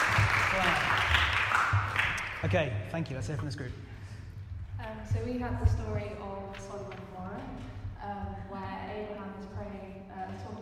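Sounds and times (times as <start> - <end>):
group round of applause: 0.0 - 2.7
speech: 2.4 - 3.9, 4.8 - 10.5.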